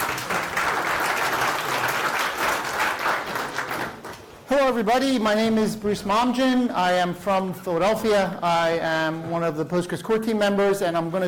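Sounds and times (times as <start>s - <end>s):
audience applause: 0.0s - 4.3s
speech: 4.5s - 11.2s.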